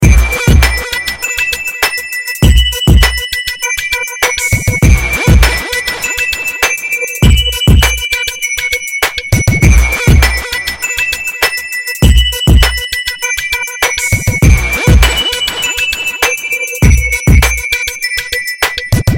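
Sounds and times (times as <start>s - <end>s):
hip hop beat: 0.0s - 19.1s
hip hop bells: 0.0s - 19.1s.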